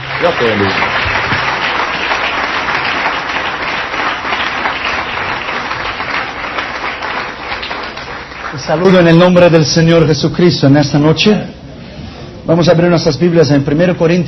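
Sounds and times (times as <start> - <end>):
audience applause in auditorium: 0.0 - 9.3
speech: 0.2 - 1.0, 8.6 - 11.6, 12.5 - 14.2.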